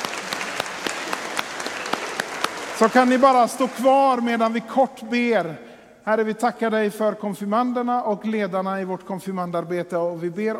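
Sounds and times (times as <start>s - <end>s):
church service applause for confirmation candidates and leaders: 0.0s - 5.0s
speech: 2.8s - 10.5s.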